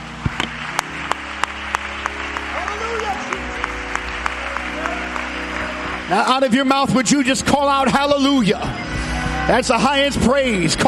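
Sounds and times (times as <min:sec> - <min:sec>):
audience clapping hands: 0:00.0 - 0:08.4
speech: 0:06.1 - 0:08.8, 0:09.5 - 0:10.8.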